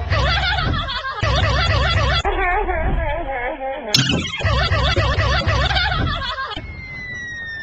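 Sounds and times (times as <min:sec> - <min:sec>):
Azula laughing: 0:00.1 - 0:06.6.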